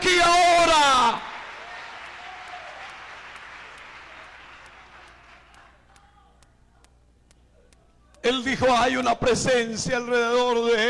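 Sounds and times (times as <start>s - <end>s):
audience applauding: 0.7s - 6.0s
speech: 8.4s - 10.8s.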